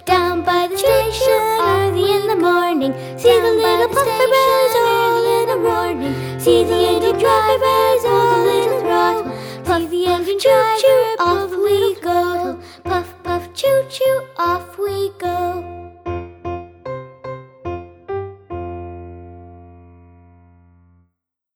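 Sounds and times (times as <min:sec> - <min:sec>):
person singing: 0:00.0 - 0:15.8.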